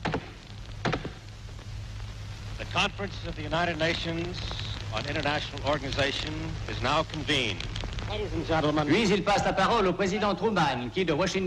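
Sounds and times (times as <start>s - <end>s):
ritual knocks on the rostrum opening the United Nations Conference on International Organization: 0.0s - 1.2s
speech: 2.6s - 11.4s.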